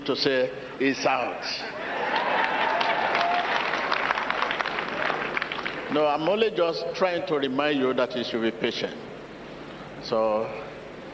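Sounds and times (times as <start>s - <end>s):
speech: 0.0s - 1.8s, 5.9s - 9.1s, 10.0s - 10.6s
audience clapping: 2.0s - 6.0s.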